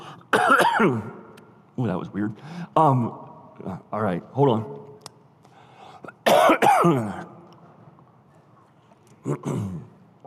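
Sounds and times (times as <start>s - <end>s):
person coughing after something went down the wrong pipe: 0.3s - 1.2s, 6.0s - 7.2s, 9.2s - 10.0s
speech: 0.5s - 1.2s, 1.8s - 4.9s, 6.3s - 7.3s, 9.2s - 9.9s.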